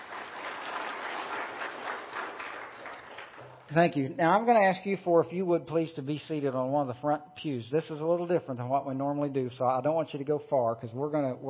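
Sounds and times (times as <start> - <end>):
audience clapping hands to vote: 0.0 - 3.8
speech: 3.7 - 11.4.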